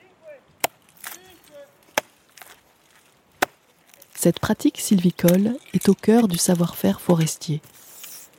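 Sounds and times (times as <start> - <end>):
hammer marking tree trunks: 1.9 - 2.6
speech: 4.2 - 7.8.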